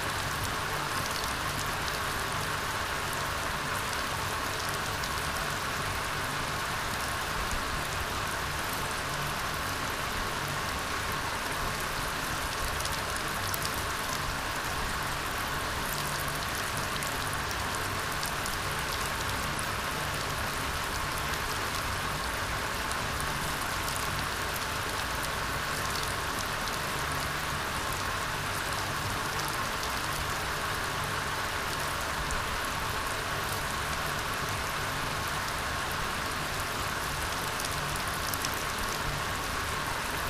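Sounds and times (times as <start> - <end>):
rain: 0.0 - 40.2.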